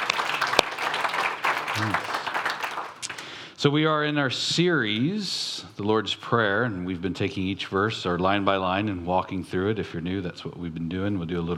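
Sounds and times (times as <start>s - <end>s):
audience clapping: 0.0s - 3.4s
speech: 1.8s - 2.1s, 3.6s - 11.5s.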